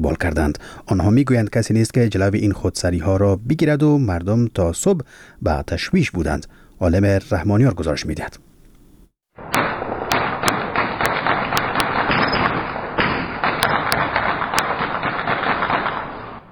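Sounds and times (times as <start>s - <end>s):
speech: 0.0s - 8.5s
gunfire from light and heavy weapons at night in Sheberghan Afghanistan: 9.4s - 16.5s.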